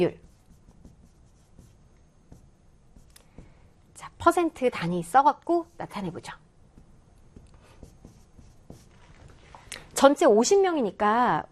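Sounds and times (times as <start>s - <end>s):
speech: 0.0s - 0.2s, 4.2s - 6.4s, 10.0s - 11.5s
writing on a board during a maths lesson: 0.0s - 3.7s, 6.7s - 9.4s.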